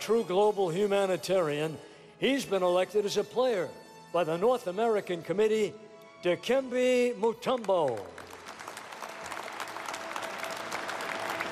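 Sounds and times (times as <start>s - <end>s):
speech: 0.0s - 8.2s
audience applause at Basketball Hall of Fame induction ceremony: 7.6s - 11.5s.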